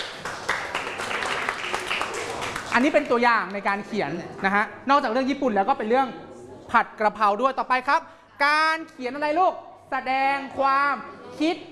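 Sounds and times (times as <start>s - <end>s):
group clapping for themselves after reading aloud: 0.0s - 3.2s
speech: 2.8s - 11.7s.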